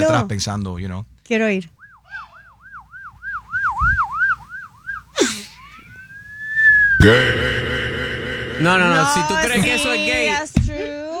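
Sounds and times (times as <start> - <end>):
speech: 0.0 - 1.8, 7.0 - 7.5, 8.6 - 10.6
whistled imitation of a police siren: 1.8 - 10.4
loud burst of noise: 5.9 - 10.4.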